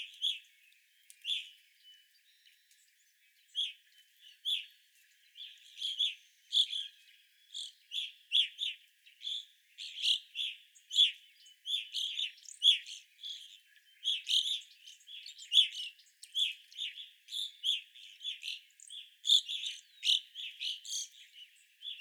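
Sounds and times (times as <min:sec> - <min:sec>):
evening grosbeaks chirping: 0:00.0 - 0:21.9.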